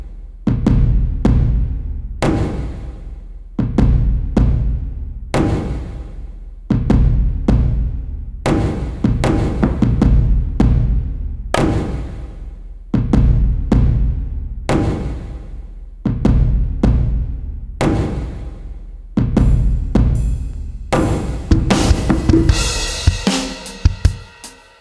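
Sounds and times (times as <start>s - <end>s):
different drums: 0.0s - 24.8s.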